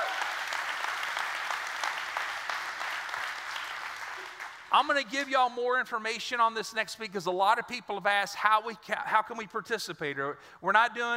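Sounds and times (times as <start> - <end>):
audience hand clap applause: 0.0 - 5.0
speech: 4.7 - 11.1.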